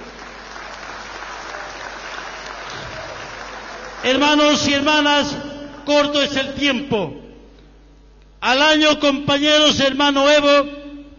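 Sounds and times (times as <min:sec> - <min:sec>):
applause: 0:00.0 - 0:04.7
speech: 0:04.0 - 0:07.2, 0:08.4 - 0:10.8.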